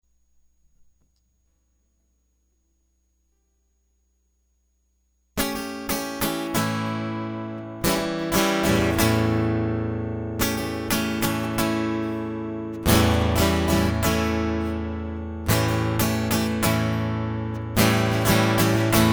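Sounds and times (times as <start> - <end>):
guitar loop: 5.4 - 19.1.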